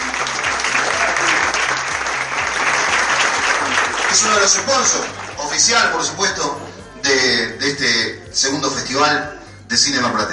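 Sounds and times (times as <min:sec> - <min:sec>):
crowd clapping: 0:00.0 - 0:06.2
speech: 0:04.2 - 0:10.3.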